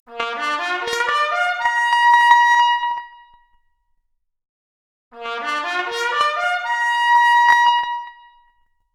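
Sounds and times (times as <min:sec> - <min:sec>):
trumpet arpeggio: 0:00.1 - 0:02.9, 0:05.2 - 0:08.2.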